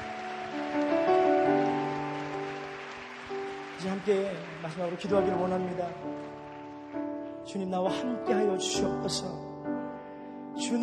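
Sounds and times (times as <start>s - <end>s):
audience applauding: 0.0s - 7.5s
speech: 4.0s - 6.3s, 7.5s - 9.5s, 10.6s - 10.8s.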